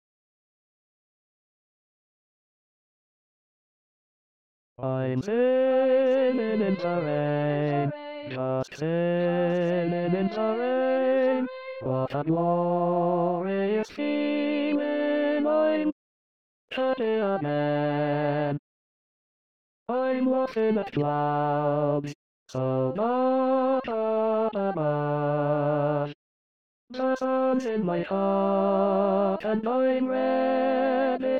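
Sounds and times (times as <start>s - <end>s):
tenor voice singing an SATB choral part: 4.8s - 16.0s, 16.7s - 18.6s, 19.9s - 26.0s, 26.9s - 31.3s.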